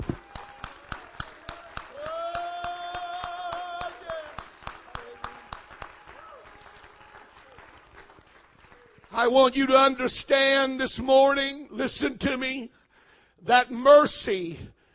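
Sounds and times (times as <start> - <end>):
audience clapping rhythmically: 0.0 - 9.8
speech: 9.2 - 12.8, 13.4 - 14.7.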